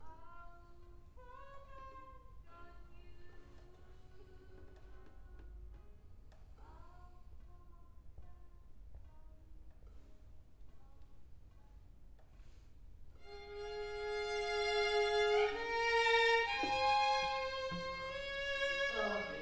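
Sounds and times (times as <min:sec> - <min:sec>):
cello: 0:13.2 - 0:19.4.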